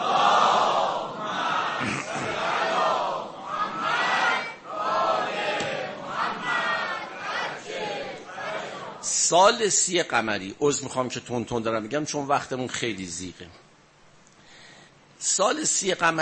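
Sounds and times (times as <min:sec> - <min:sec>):
crowd reciting salawat in unison: 0:00.0 - 0:09.3
speech: 0:09.3 - 0:13.6, 0:15.4 - 0:16.2.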